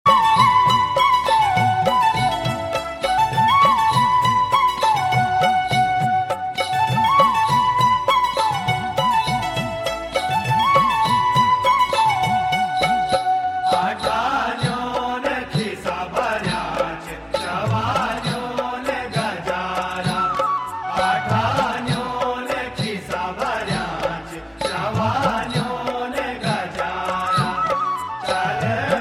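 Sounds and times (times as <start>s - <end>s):
Garhwali folk music tone: 0.1s - 29.0s.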